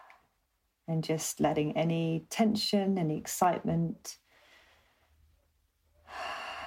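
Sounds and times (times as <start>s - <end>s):
speech: 0.9s - 4.2s
slow deep breath in through the nose, out through the mouth: 4.3s - 5.3s, 6.0s - 6.6s.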